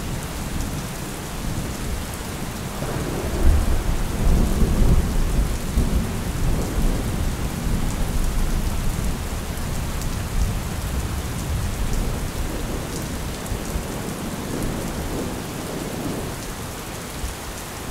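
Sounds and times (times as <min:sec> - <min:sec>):
rain: 0:00.0 - 0:17.8
thunder: 0:02.8 - 0:07.2.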